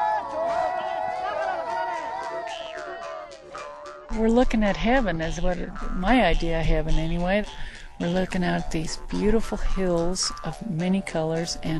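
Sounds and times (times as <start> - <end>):
children's encouraging calls to horses being warmed up: 0.0 - 3.7
speech: 4.1 - 11.7.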